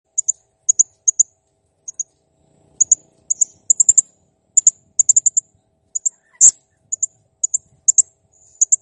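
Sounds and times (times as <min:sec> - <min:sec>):
blue-crowned hanging parrot quick high ticking chirps: 0:00.2 - 0:01.3, 0:01.9 - 0:02.1, 0:02.8 - 0:04.0, 0:04.6 - 0:05.4, 0:06.0 - 0:08.7.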